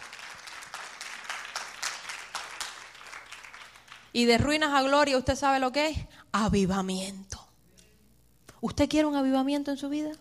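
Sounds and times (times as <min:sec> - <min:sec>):
crowd clapping: 0:00.0 - 0:04.4
speech: 0:04.2 - 0:07.3, 0:08.6 - 0:10.2.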